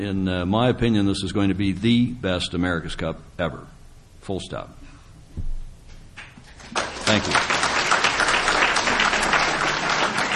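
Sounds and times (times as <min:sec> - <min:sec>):
speech: 0:00.0 - 0:05.5, 0:07.1 - 0:07.6
audience applause: 0:06.6 - 0:10.3.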